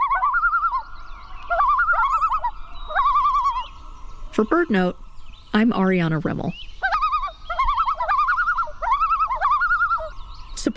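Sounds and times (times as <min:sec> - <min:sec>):
common loon calling with a quavering tremolo: 0:00.0 - 0:04.8, 0:06.8 - 0:10.4
speech: 0:04.4 - 0:06.7.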